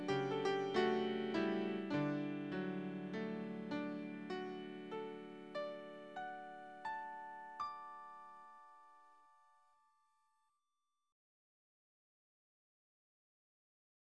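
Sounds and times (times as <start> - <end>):
piano lullaby: 0.0 - 10.4.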